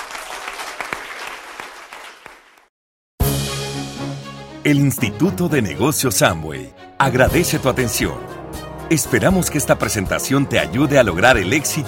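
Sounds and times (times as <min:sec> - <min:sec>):
audience applause: 0:00.0 - 0:02.7
speech: 0:04.6 - 0:11.8.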